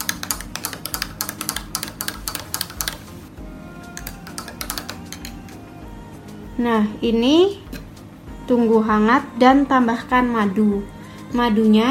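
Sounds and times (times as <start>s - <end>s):
spoon stirring a drink: 0.0s - 3.0s, 4.0s - 5.6s
speech: 6.6s - 7.6s, 8.5s - 11.8s.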